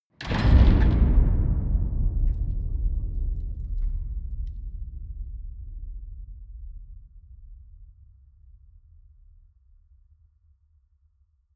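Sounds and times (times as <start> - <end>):
enormous metal gate: 0.2 - 4.5.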